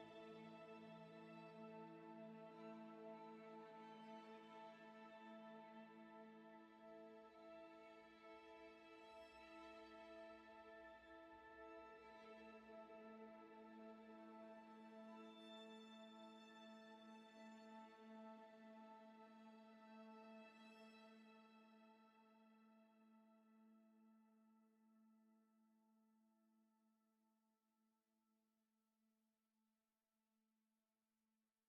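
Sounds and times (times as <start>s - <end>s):
tonal ambient strings in A: 0.0s - 22.9s.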